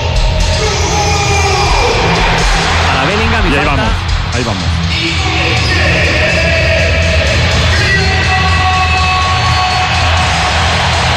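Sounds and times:
stadium crowd roaring and cheering: 0.0s - 11.1s
speech: 4.4s - 5.3s
stadium crowd applause: 9.2s - 11.1s.

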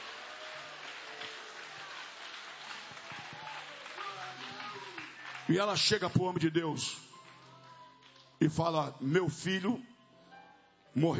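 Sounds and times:
audience clapping hands: 0.0s - 8.7s
speech: 5.5s - 7.1s, 8.4s - 9.9s, 10.9s - 11.1s.

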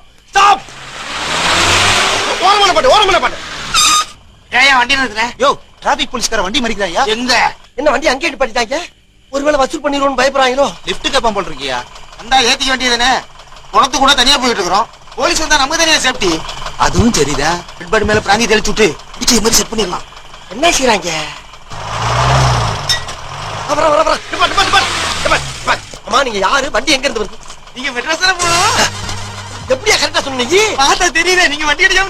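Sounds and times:
approaching vehicle engine revving: 0.6s - 4.5s, 11.6s - 32.0s
speech: 3.0s - 3.4s, 4.7s - 21.9s, 23.7s - 24.5s, 26.1s - 29.0s, 29.7s - 32.0s.

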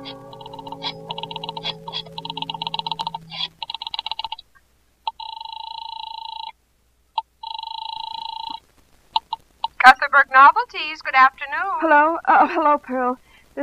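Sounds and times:
telephone being dialed: 0.4s - 4.4s, 5.1s - 6.5s, 7.4s - 8.6s
speech: 10.2s - 13.6s.

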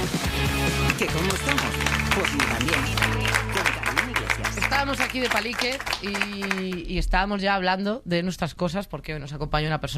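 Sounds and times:
audience applause: 0.7s - 6.8s
speech: 1.0s - 3.4s, 4.8s - 9.9s.

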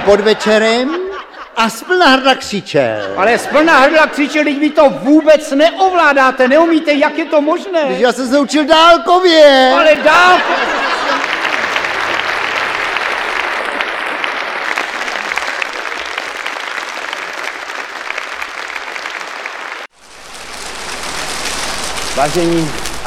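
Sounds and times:
speech: 0.0s - 1.0s, 1.6s - 10.9s, 22.2s - 23.0s
laughter: 0.0s - 5.1s, 9.6s - 16.4s
audience applause: 10.0s - 23.0s.

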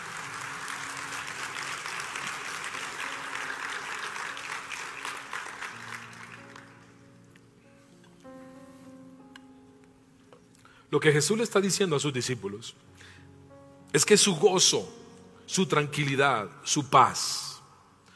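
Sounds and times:
audience applauding: 0.0s - 7.1s
speech: 10.9s - 13.1s, 14.0s - 17.5s.

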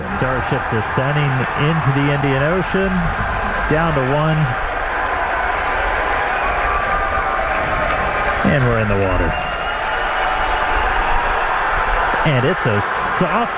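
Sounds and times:
crowd cheering and applauding: 0.0s - 13.5s
speech: 0.2s - 4.7s, 8.4s - 9.5s, 12.2s - 13.5s.

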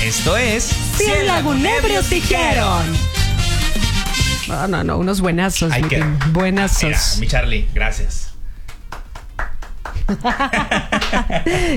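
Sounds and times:
speech: 0.1s - 3.2s, 4.5s - 8.3s, 10.1s - 11.7s
applause among the team: 5.7s - 6.9s, 8.7s - 11.3s
laughter: 10.0s - 11.7s.

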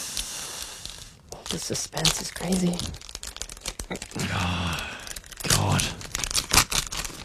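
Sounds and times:
paper envelope being torn open: 1.4s - 7.2s
speech: 1.5s - 3.1s, 3.9s - 4.9s.

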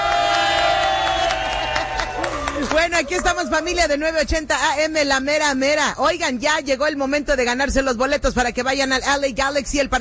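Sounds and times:
audience clapping at a radio event at a Nissan dealership in Garden Grove: 0.0s - 3.5s
speech: 2.8s - 9.9s.

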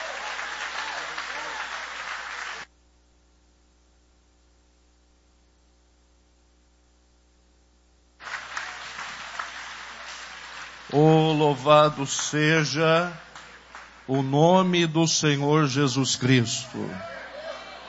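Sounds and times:
audience applauding: 0.0s - 2.7s, 8.2s - 14.7s
speech: 10.9s - 13.2s, 14.1s - 17.2s.

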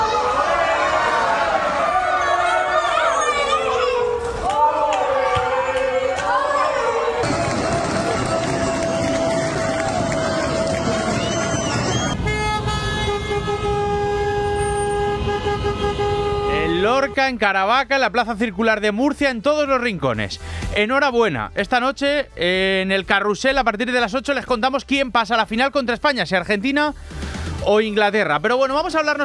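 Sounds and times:
crowds shouting and chanting in street celebrations: 0.0s - 12.2s
car horns honking in street celebrations across the Murcia region: 11.9s - 17.5s
speech: 17.3s - 29.2s.

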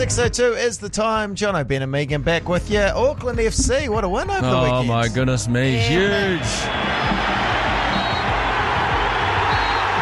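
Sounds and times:
speech: 0.0s - 7.0s
football stadium crowd cheering: 5.9s - 10.0s.

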